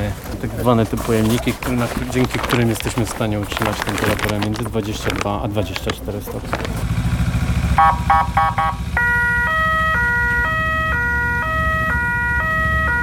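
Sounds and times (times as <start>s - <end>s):
ambulance motorcycle engine rumble: 0.0s - 12.9s
speech: 0.6s - 7.0s, 7.8s - 9.0s
ambulance motorcycle siren two-tone wail: 7.8s - 13.0s.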